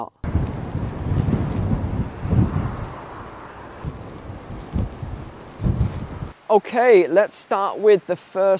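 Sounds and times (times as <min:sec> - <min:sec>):
stormy wind buffeting the microphone outdoors: 0:00.0 - 0:06.5
speech: 0:06.5 - 0:08.5.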